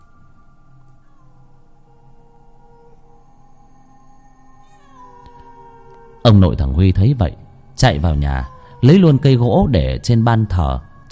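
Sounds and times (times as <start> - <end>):
low drone: 0.0 - 11.1
cat screeching on the roof of a house at night: 4.6 - 6.8, 7.6 - 11.1
speech: 6.2 - 11.1.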